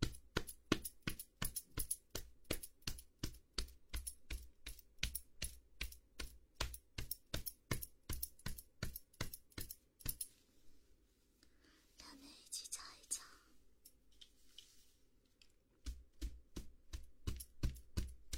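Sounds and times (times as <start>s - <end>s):
head and shoulder massage percussive taps: 0.0s - 10.3s, 15.7s - 18.3s
rustling and brushing: 6.2s - 12.2s, 13.9s - 18.3s.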